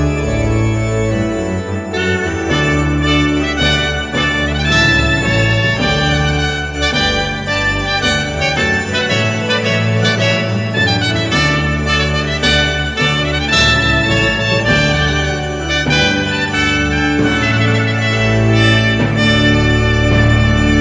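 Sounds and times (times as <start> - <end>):
timpani in wedding ceremony music: 0.0 - 20.8
two trumpets playing wedding ceremony music: 0.0 - 20.8.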